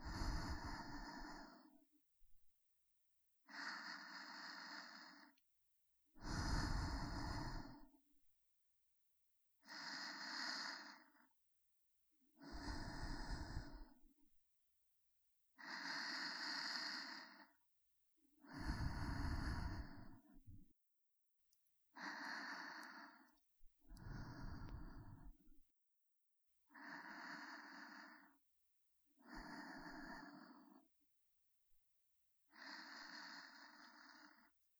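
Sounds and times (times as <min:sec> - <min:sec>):
breathing in the right and left ear: 0:00.0 - 0:01.8, 0:03.4 - 0:05.4, 0:06.2 - 0:08.0, 0:09.6 - 0:11.3, 0:12.4 - 0:14.1, 0:15.6 - 0:17.6, 0:18.4 - 0:20.7, 0:22.0 - 0:25.6, 0:26.7 - 0:28.4, 0:29.2 - 0:30.9, 0:32.5 - 0:34.6.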